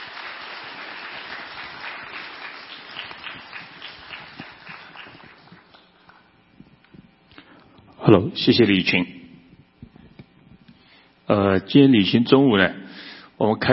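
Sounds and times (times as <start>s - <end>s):
warm applause from audience: 0.0s - 6.2s
speech: 8.0s - 9.2s, 11.3s - 12.8s, 13.4s - 13.7s.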